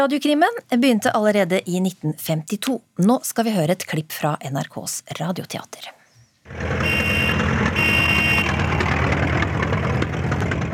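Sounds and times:
speech: 0.0s - 7.0s
steady dense roar of big-city traffic and rumbling engines: 6.5s - 10.7s.

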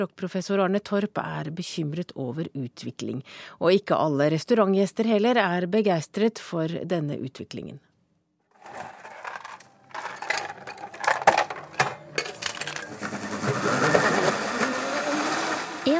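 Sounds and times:
speech: 0.0s - 7.9s
clattering and bumping: 8.6s - 14.1s
blender mixing ice cream, cheese and blueberries in a TGI Fridays in Trondheim: 11.8s - 15.9s.

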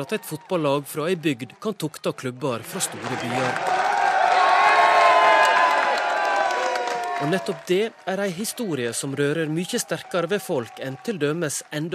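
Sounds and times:
speech: 0.0s - 3.8s, 7.2s - 11.9s
crowd howling with joy: 3.0s - 11.0s.

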